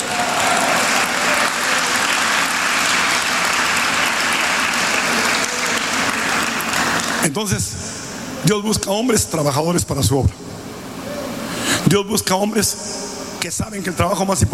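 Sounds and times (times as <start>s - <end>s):
audience applause: 0.0s - 7.4s
speech: 7.2s - 10.5s, 11.8s - 14.5s.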